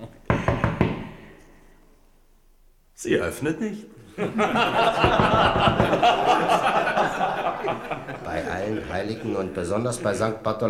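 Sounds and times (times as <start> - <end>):
knocking on a door: 0.3 - 1.2, 5.0 - 6.0
speech: 3.0 - 10.6
laughter: 4.1 - 10.4.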